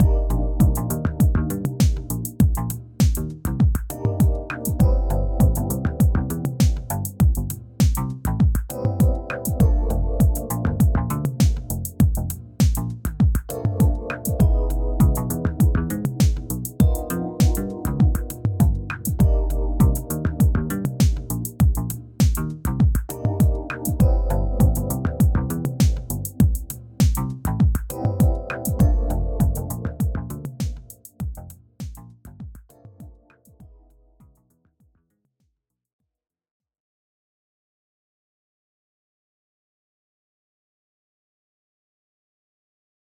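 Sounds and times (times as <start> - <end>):
Rhodes electric piano: 0.0 - 31.2, 32.7 - 34.1.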